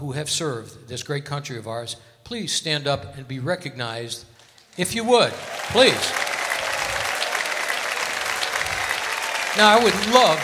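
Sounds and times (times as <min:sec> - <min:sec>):
speech: 0:00.0 - 0:06.2, 0:09.6 - 0:10.4
audience applause: 0:05.0 - 0:10.4.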